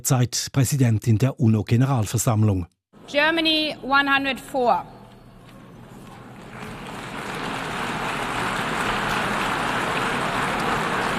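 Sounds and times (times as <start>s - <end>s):
speech: 0.0s - 5.0s
subdued applause from a crowd: 6.2s - 11.1s.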